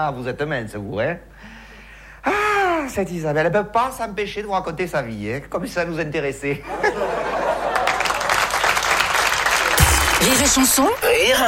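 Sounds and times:
speech: 0.0s - 1.6s, 2.2s - 7.5s, 10.2s - 11.4s
laughter: 6.6s - 8.7s
audience applause: 7.4s - 11.4s.

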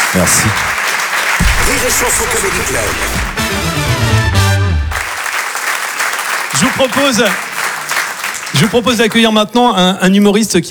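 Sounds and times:
comedy club audience applauding: 0.0s - 9.6s
speech: 0.1s - 0.8s, 1.6s - 3.7s, 6.6s - 7.5s, 8.5s - 10.7s.

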